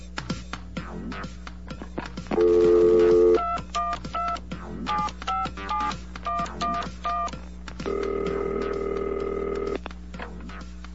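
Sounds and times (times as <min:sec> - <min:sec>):
long steady telephone line tone for an incoming call: 0:02.4 - 0:04.4, 0:04.9 - 0:09.8.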